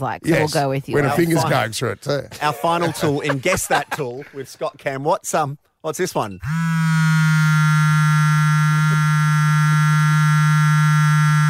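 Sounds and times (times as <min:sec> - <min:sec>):
speech: 0:00.0 - 0:07.0
laughter: 0:02.3 - 0:04.8
vibrator buzzing: 0:06.4 - 0:11.4.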